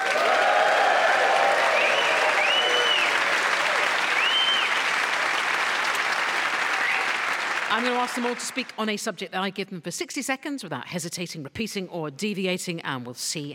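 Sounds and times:
crowd whooping and cheering: 0.0 - 7.7
crowd applauding: 0.0 - 8.8
speech: 7.7 - 13.5.

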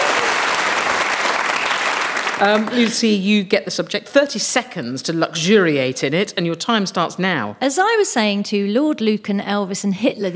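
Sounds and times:
audience applause for a contestant's inaugural performance: 0.0 - 3.0
speech: 2.4 - 10.3.

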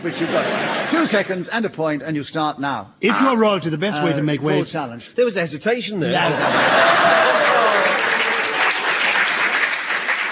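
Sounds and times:
laughter: 0.0 - 1.4, 6.0 - 8.8
speech: 0.0 - 7.5
studio audience applause: 6.4 - 10.3.

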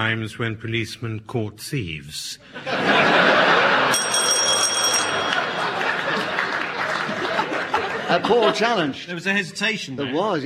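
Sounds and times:
speech: 0.0 - 3.7, 8.1 - 10.4
laughter: 2.4 - 9.3
audience applause: 5.1 - 8.2.

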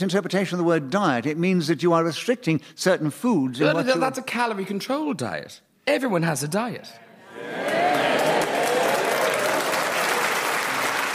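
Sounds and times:
speech: 0.0 - 8.1
studio audience applause on a comedy panel show: 7.3 - 11.1.

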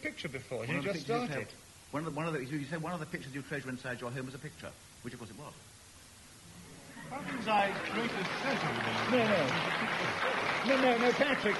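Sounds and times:
speech: 0.0 - 5.7, 7.1 - 11.5
audience clapping: 7.1 - 11.5.

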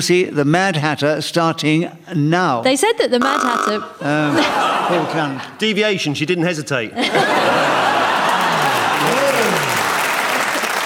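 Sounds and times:
speech: 0.0 - 7.8
laughter: 4.0 - 5.6, 6.9 - 10.8
audience applause: 7.5 - 10.8.

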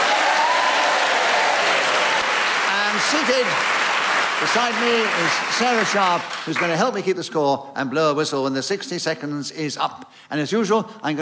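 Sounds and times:
studio audience applause welcoming panel game players: 0.0 - 7.0
speech: 3.0 - 3.8, 4.4 - 11.1.

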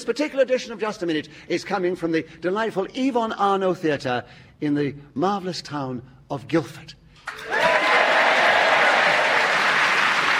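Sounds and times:
speech: 0.0 - 7.7
theatre audience in Guildford, Surrey, applauding: 7.3 - 10.3.

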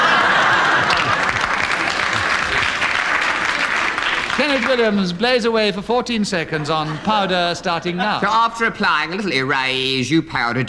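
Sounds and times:
laughter: 0.0 - 5.0, 6.1 - 9.2
audience cheering: 0.0 - 5.2
speech: 4.4 - 10.6.

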